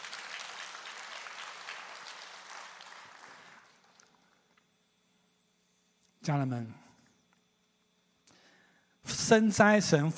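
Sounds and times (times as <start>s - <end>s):
audience applause: 0.0s - 4.3s
speech: 6.3s - 6.8s, 9.3s - 10.1s.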